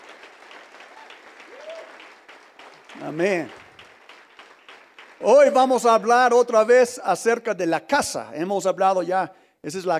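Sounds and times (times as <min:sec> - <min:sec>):
audience applause: 0:00.0 - 0:06.0
speech: 0:03.0 - 0:03.6, 0:05.2 - 0:09.9.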